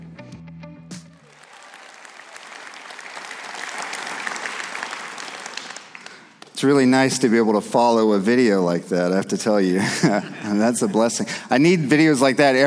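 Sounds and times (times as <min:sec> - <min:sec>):
audience hand clapping applause: 0:01.1 - 0:06.6
speech: 0:06.6 - 0:12.6
laughter: 0:09.6 - 0:11.4.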